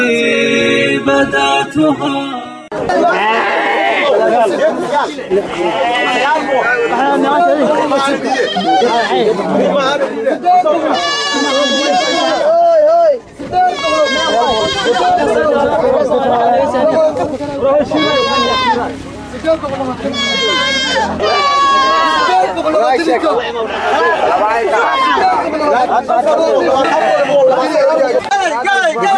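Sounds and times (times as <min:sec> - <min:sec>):
crowd chatter: 0:00.0 - 0:29.1
goats and sheep bleating at a large livestock market in Kunyabarow, Lower Shabelle: 0:02.9 - 0:04.5, 0:05.5 - 0:07.1, 0:07.7 - 0:09.2, 0:10.8 - 0:12.7, 0:13.6 - 0:15.4, 0:17.9 - 0:19.0, 0:20.1 - 0:22.5, 0:26.6 - 0:27.7.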